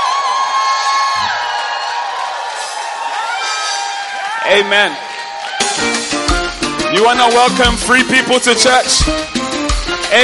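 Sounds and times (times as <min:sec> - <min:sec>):
church congregation shouting praise: 0:00.0 - 0:09.7
speech: 0:04.5 - 0:05.1, 0:06.9 - 0:09.4.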